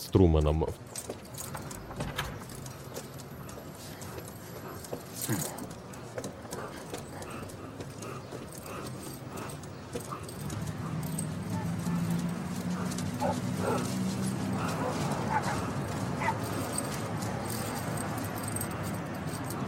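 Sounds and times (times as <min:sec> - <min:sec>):
large chestnut dog's leash being unclipped with metal jangling: 0:00.4 - 0:19.6.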